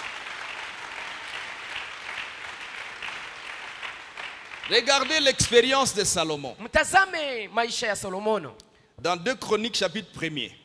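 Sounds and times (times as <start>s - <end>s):
church congregation applauding during a sermon: 0.0s - 6.4s
speech: 4.7s - 10.6s.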